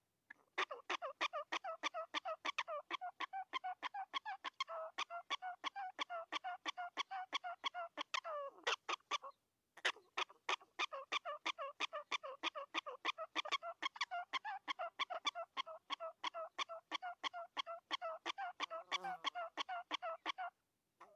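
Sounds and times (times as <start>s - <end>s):
prairie dog chirp-barks: 0.6s - 21.1s.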